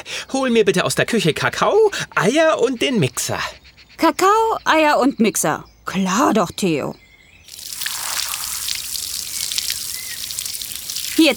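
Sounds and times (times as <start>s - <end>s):
speech: 0.1s - 7.0s
garden hose spraying water on bones: 7.5s - 11.3s.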